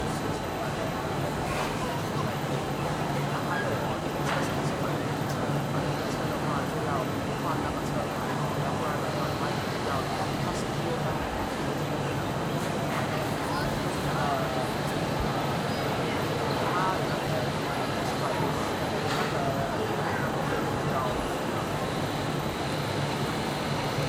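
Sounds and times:
large crowd walla in a busy food court in Singapore: 0.0s - 24.0s.

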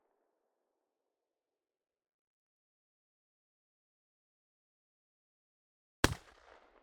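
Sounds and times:
Beretta 1201F firing: 6.1s - 6.6s.

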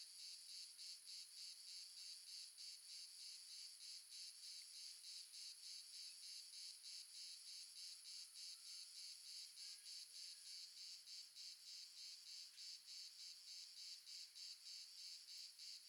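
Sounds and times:
multiple crickets chirping shrilly in the south of France: 0.2s - 15.8s.

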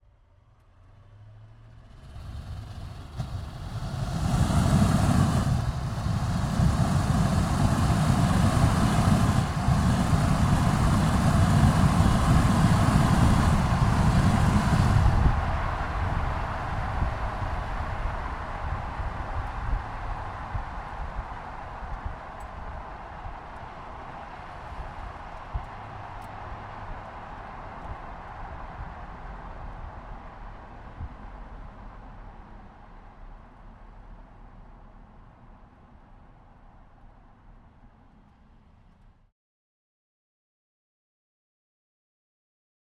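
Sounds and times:
Range Rover SDV8 exhaust driving fast, left side onboard: 0.2s - 38.6s.

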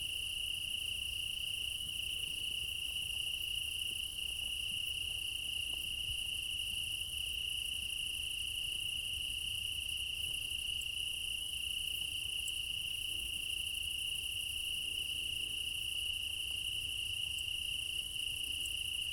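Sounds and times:
crickets chirping in a meadow at night in Crimea in summer: 0.0s - 19.1s.

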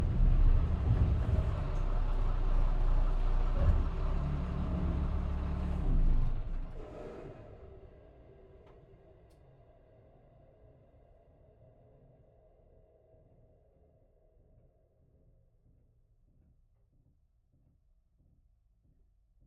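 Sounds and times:
Renault VAB armoured personnel carrier driving fast, heard from rear compartment interior: 0.0s - 7.5s.

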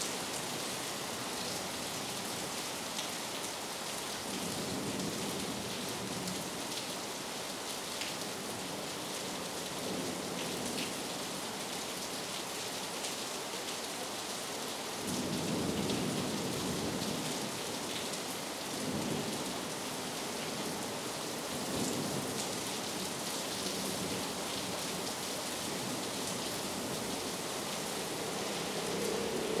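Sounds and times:
heavy rain: 0.0s - 29.5s
distant thunder: 26.7s - 29.5s.

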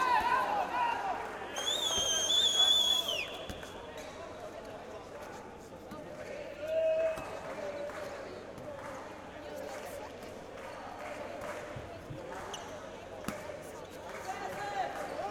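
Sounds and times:
men's handball match ambience: 0.0s - 15.2s.

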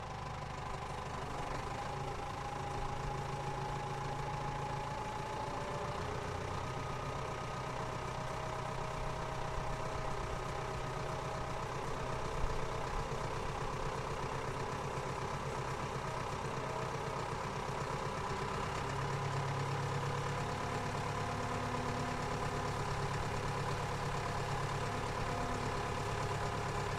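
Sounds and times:
1979 Ford 7700 tractor engine starting, driving, reversing and stopping: 0.2s - 26.9s
1979 Ford 7700 tractor transmission: 10.6s - 26.9s.

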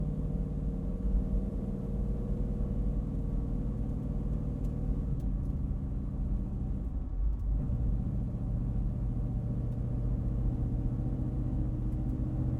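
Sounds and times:
1971 Dodge Challenger R-T driving, heard onboard from the interior: 0.0s - 12.5s.

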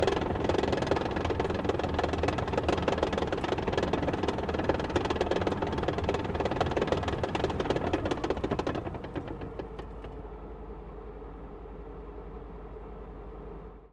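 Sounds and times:
tank destroyer engine driving, reversing and stopping, heard onboard: 0.0s - 10.8s.

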